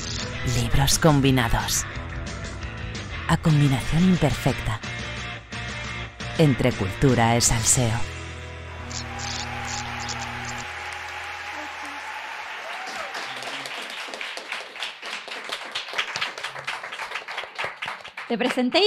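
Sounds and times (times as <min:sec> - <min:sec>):
speech: 0:00.4 - 0:02.0, 0:03.3 - 0:04.9, 0:06.4 - 0:08.1, 0:18.3 - 0:18.8
hands clapping: 0:08.9 - 0:18.8.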